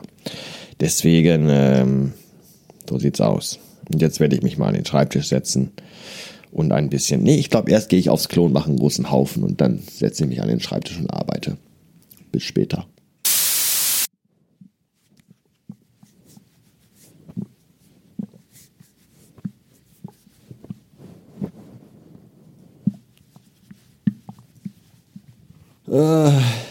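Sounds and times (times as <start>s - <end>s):
speech: 0.8s - 2.2s, 2.9s - 11.7s, 12.3s - 13.0s
stomach rumbling noises: 17.2s - 25.8s.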